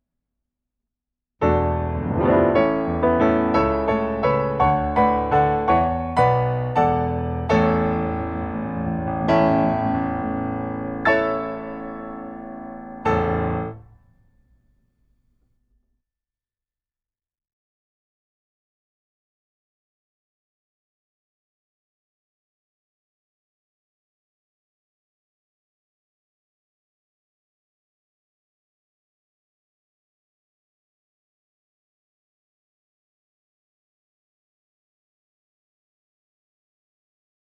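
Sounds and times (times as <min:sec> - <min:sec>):
piano track: 0:01.4 - 0:14.0.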